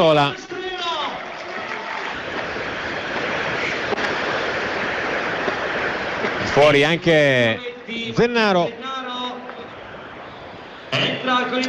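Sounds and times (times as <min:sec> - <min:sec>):
speech: 0:00.0 - 0:00.6, 0:06.6 - 0:08.8, 0:11.4 - 0:11.6
timid applause in a stadium: 0:00.0 - 0:06.6.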